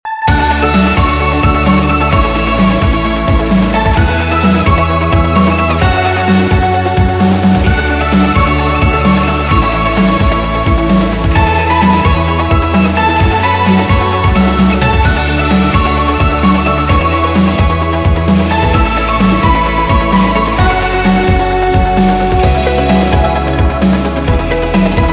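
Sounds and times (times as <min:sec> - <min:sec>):
pop rock ringtone: 0:00.1 - 0:25.1.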